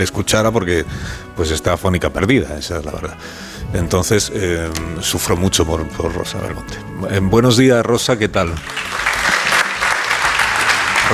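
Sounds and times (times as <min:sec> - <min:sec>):
speech: 0:00.0 - 0:09.1
audience applause: 0:08.6 - 0:11.1.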